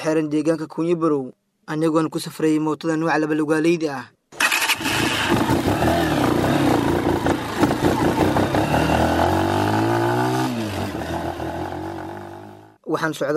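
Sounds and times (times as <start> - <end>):
speech: 0.0 - 4.2, 12.9 - 13.3
motorcycle engine on a ride toward the village of Yaqtoole: 4.4 - 12.8.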